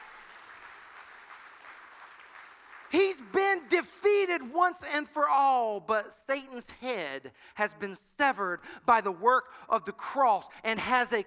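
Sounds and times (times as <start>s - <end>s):
crowd clapping: 0.0s - 3.7s
speech: 3.2s - 11.2s.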